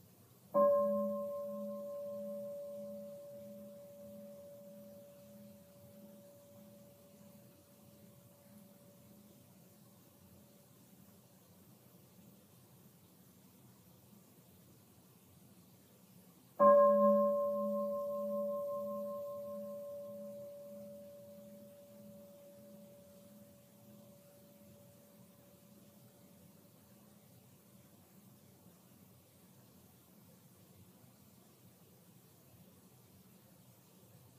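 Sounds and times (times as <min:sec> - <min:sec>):
meditation bell ringing: 0:00.6 - 0:09.2, 0:16.6 - 0:25.8.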